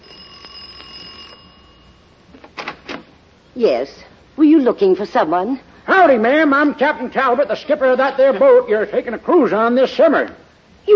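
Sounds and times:
doorbell ringing: 0:00.0 - 0:02.3
speech: 0:03.6 - 0:10.9.

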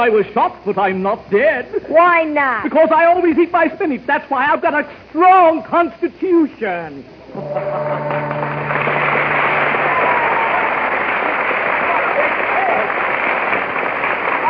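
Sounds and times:
speech: 0:00.0 - 0:08.3
studio audience applause: 0:07.4 - 0:14.4.

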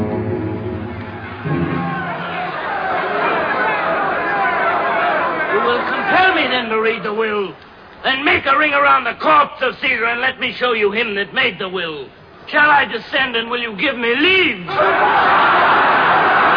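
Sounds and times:
large crowd murmuring and chattering: 0:00.9 - 0:07.2
louder individual voices: 0:01.0 - 0:08.9, 0:14.7 - 0:16.5
speech: 0:06.5 - 0:15.6.

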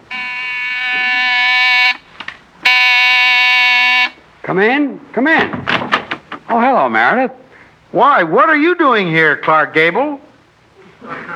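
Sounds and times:
door buzzer: 0:00.0 - 0:04.2
speech: 0:04.5 - 0:05.9, 0:06.5 - 0:10.2.

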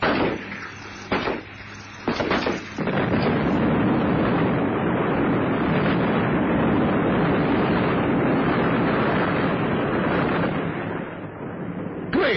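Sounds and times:
sharp cracking bursts: 0:00.0 - 0:03.6
helicopter exploding: 0:00.0 - 0:12.1
sustained roaring rumble of burning fireball: 0:00.0 - 0:12.3.

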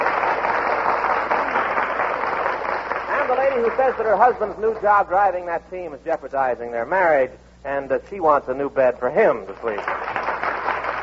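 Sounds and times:
studio audience applause: 0:00.0 - 0:04.9, 0:09.7 - 0:11.0
speech: 0:03.6 - 0:10.0.

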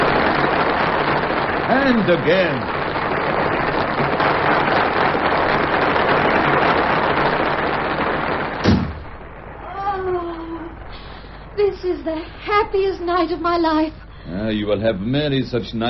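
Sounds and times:
theatre audience applause: 0:00.0 - 0:08.8
speech: 0:01.7 - 0:02.8, 0:12.0 - 0:15.8.

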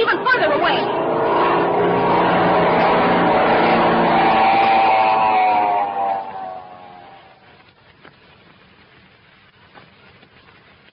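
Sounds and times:
car engine droning as it drives toward a cabin: 0:00.0 - 0:07.6.

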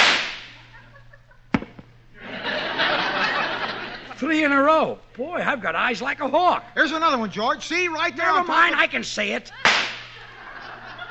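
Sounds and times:
gunshot: 0:00.0 - 0:00.6, 0:09.7 - 0:10.2
laughter: 0:00.6 - 0:01.5, 0:02.2 - 0:04.5, 0:09.4 - 0:11.0
speech: 0:04.2 - 0:09.6.

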